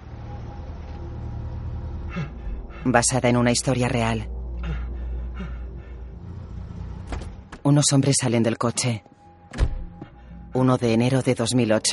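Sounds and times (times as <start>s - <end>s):
car engine rumbling driving onto a snowy clearing: 0.0s - 7.7s
speech: 2.2s - 4.8s, 7.7s - 9.6s, 10.6s - 11.9s.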